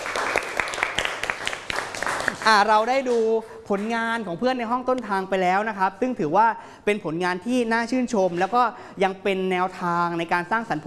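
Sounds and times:
students clapping in a classroom for a classmate's artwork: 0.0s - 4.0s
speech: 2.4s - 10.8s.

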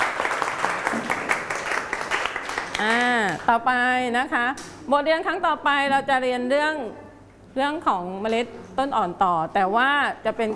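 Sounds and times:
group clapping hands: 0.0s - 3.5s
speech: 2.8s - 7.0s, 7.6s - 10.5s.

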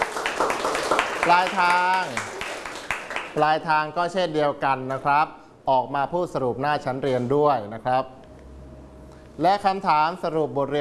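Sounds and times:
classroom applause: 0.0s - 3.4s
speech: 1.3s - 2.3s, 3.4s - 8.2s, 9.4s - 10.7s.

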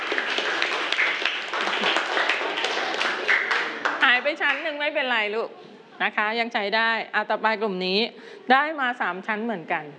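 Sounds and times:
group applause: 0.0s - 4.8s
speech: 4.3s - 9.9s.

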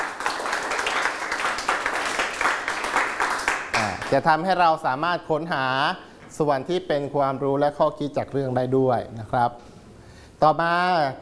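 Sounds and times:
classroom students applauding: 0.0s - 4.2s
speech: 4.1s - 9.7s, 10.4s - 11.1s.

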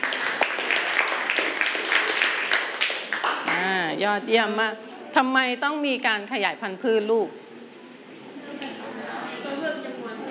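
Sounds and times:
classroom applause: 0.0s - 3.8s
speech: 4.0s - 7.4s.

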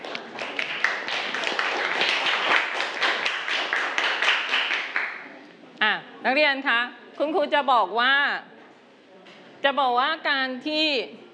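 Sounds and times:
group of students clapping: 0.0s - 5.3s
speech: 6.3s - 8.5s, 9.6s - 11.2s.

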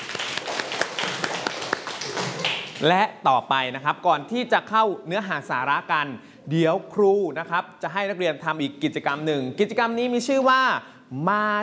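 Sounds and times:
students in a class clapping: 0.0s - 2.9s
speech: 2.8s - 11.6s.

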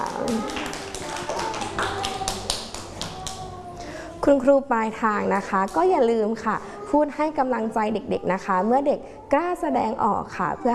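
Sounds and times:
children clapping hands: 0.0s - 3.5s
speech: 0.3s - 0.6s, 4.2s - 10.7s.

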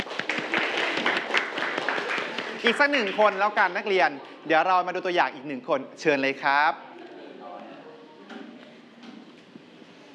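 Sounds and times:
students in a class applauding: 0.0s - 4.4s
speech: 2.6s - 6.9s.

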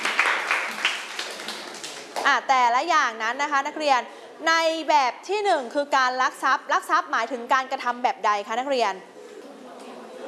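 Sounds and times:
students applauding a classmate in a classroom: 0.0s - 2.3s
speech: 2.3s - 9.1s.

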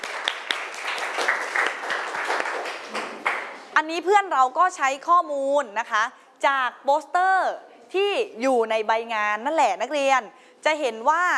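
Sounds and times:
group clapping for a student: 0.0s - 3.8s
speech: 3.9s - 11.3s.

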